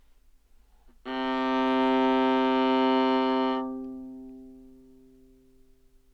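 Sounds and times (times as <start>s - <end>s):
modern viola playing open G string anechoic: 1.0s - 5.3s.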